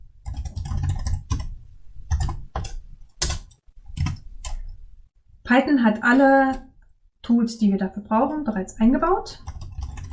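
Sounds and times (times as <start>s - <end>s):
typing a Python script on a computer keyboard: 0.2s - 4.8s, 9.4s - 10.1s
speech: 5.5s - 6.7s, 7.3s - 9.5s.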